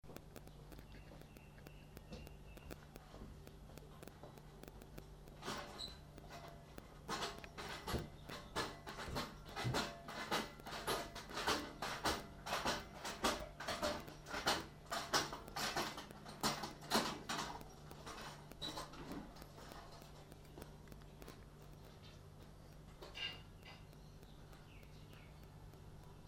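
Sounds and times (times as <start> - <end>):
hand cart dragged down stairs while shifting things: 7.1 - 19.8.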